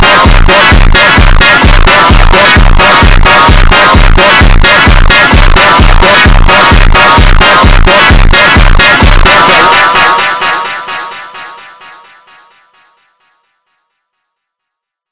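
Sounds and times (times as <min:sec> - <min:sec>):
funk music: 0:00.0 - 0:12.0.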